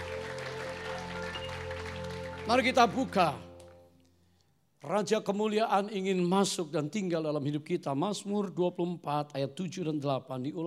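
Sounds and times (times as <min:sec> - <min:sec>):
audience applause: 0:00.0 - 0:03.8
speech: 0:02.5 - 0:03.5, 0:04.8 - 0:10.6.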